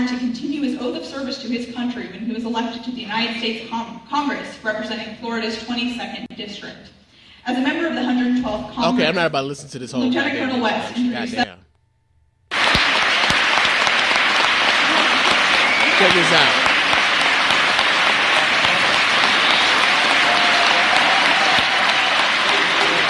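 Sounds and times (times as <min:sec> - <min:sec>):
speech: 0:00.0 - 0:11.6, 0:16.0 - 0:16.6
scattered applause from a crowd: 0:12.5 - 0:23.0.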